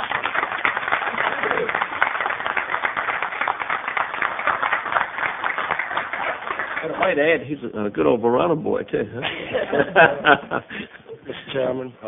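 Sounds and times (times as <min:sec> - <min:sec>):
group applauding: 0:00.0 - 0:07.4
speech: 0:07.0 - 0:10.8, 0:11.6 - 0:12.0
laughter: 0:09.2 - 0:11.6.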